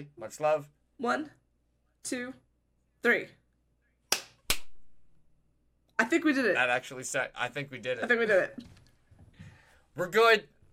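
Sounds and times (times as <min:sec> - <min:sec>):
speech: 0:00.0 - 0:01.4, 0:02.0 - 0:02.4, 0:03.0 - 0:03.4, 0:06.0 - 0:08.8, 0:10.0 - 0:10.5
hand clap for audio sync: 0:04.1 - 0:04.8.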